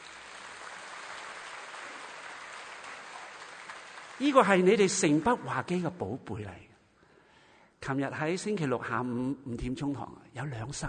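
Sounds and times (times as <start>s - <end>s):
crowd clapping: 0.0s - 5.8s
speech: 4.2s - 6.7s, 7.9s - 10.8s.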